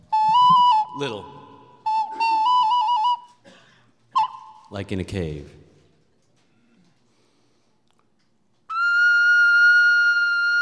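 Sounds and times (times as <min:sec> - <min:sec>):
ocarina playing: 0:00.0 - 0:03.4, 0:08.7 - 0:10.6
speech: 0:01.0 - 0:01.4, 0:04.7 - 0:05.6.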